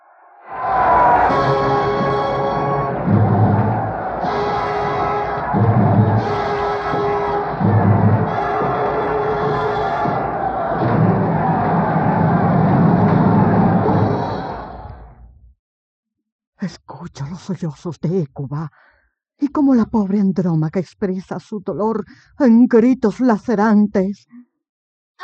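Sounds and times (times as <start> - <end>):
crowd of Troy roaring: 0.1 - 15.2
speech: 17.5 - 24.4.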